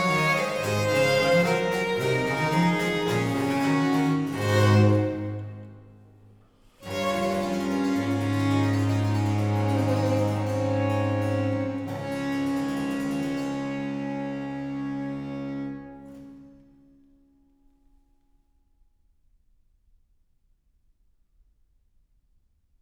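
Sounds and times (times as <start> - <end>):
trio sonata in D major: 0.0 - 6.1, 6.8 - 16.8.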